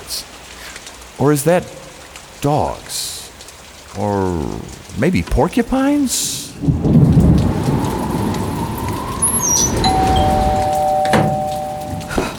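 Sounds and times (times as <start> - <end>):
heavy rain hissing: 0.0 - 12.3
wind: 0.0 - 12.3
speech: 1.2 - 1.8, 2.4 - 3.0, 4.0 - 7.1
thin whistling tone: 8.3 - 12.1.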